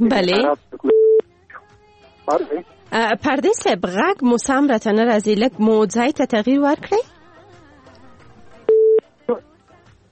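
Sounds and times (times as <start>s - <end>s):
speech: 0.0s - 0.7s, 2.3s - 7.1s, 9.3s - 9.5s
telephone busy tone after a call disconnects: 8.7s - 9.0s.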